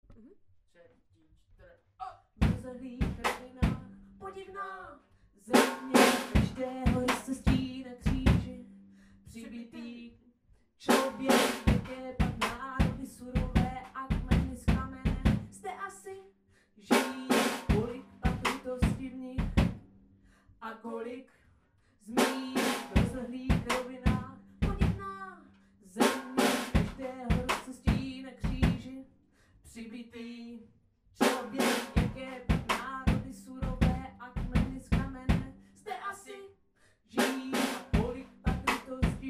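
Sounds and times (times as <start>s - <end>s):
hip hop singing: 5.5s - 8.6s, 10.9s - 15.8s, 16.9s - 19.6s, 22.1s - 29.0s, 31.2s - 36.4s, 37.2s - 39.2s.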